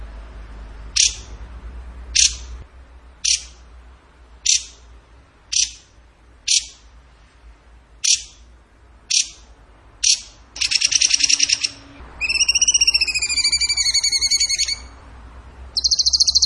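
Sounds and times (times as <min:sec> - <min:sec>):
bird singing notes and trill: 0:00.9 - 0:01.4, 0:02.1 - 0:02.5, 0:03.2 - 0:03.6, 0:04.4 - 0:04.8, 0:05.5 - 0:06.9, 0:08.0 - 0:08.5, 0:09.1 - 0:15.1, 0:15.7 - 0:16.4.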